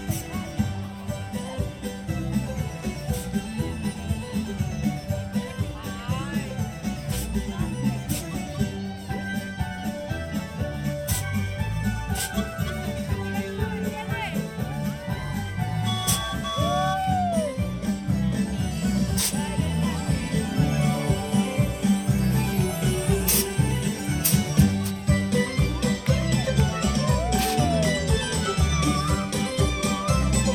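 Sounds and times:
parade music: 0.0s - 30.5s
short rising-falling whistle-like tones: 15.5s - 17.9s, 26.4s - 30.5s.

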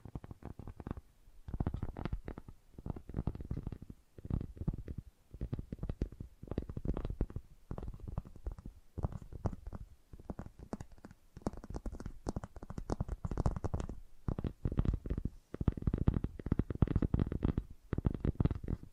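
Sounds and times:
fast tapping: 0.0s - 18.9s.

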